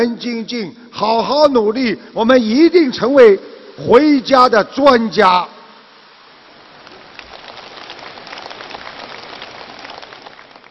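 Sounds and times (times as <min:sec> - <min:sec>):
speech: 0:00.0 - 0:05.6
crowd enthusiastic applause: 0:06.7 - 0:10.6.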